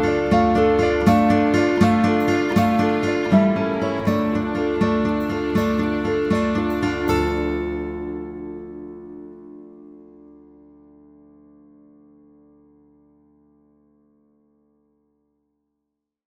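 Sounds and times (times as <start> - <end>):
instrumental music: 0.0 - 12.2.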